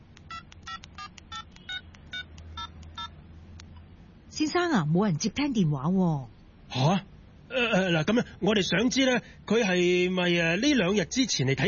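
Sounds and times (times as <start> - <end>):
low steady hum: 0.0 - 11.6
telephone keypad touch-tone beeps: 0.3 - 3.1
speech: 4.4 - 11.6.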